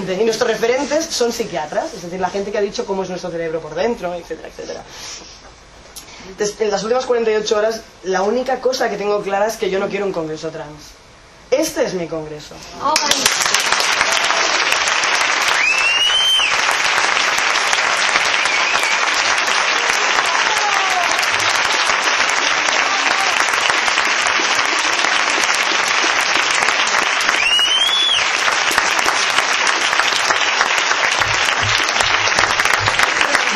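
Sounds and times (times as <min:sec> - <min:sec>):
speech: 0:00.0 - 0:05.5, 0:06.2 - 0:13.7
audience applause: 0:13.0 - 0:33.5.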